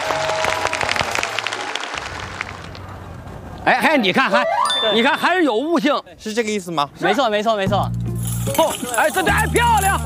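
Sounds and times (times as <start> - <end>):
audience applause: 0.0 - 2.7
speech: 3.7 - 10.0.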